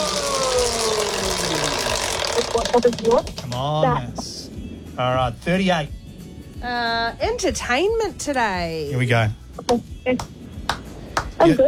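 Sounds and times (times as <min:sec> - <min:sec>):
prize wheel being spun: 0:00.0 - 0:04.1
low whirring hum: 0:00.0 - 0:11.6
speech: 0:02.8 - 0:04.3, 0:05.0 - 0:06.0, 0:06.6 - 0:10.4, 0:11.4 - 0:11.6.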